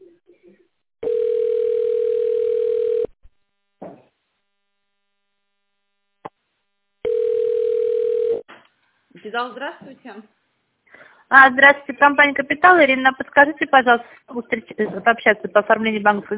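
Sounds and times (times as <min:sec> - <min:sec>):
telephone ringback tone: 0:01.0 - 0:03.1, 0:07.0 - 0:08.4
speech: 0:09.3 - 0:10.4, 0:11.3 - 0:16.3.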